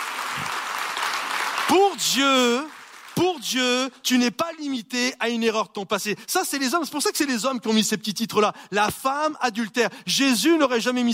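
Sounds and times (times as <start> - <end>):
audience applauding: 0.0 - 3.4
speech: 1.7 - 11.1.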